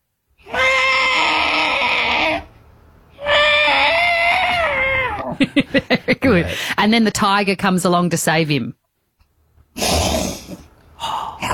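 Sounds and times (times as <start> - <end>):
voice imitating a trapped elephant calling: 0.4 - 2.5, 3.2 - 5.4
laughter: 5.2 - 6.5
speech: 5.6 - 8.8, 9.8 - 10.1.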